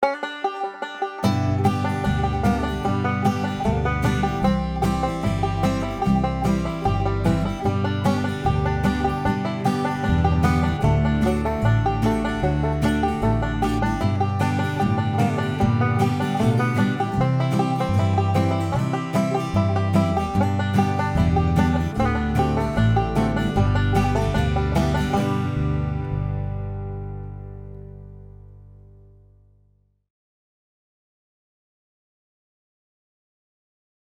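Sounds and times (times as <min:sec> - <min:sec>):
5-string banjo played in natural style: 0:00.0 - 0:29.4.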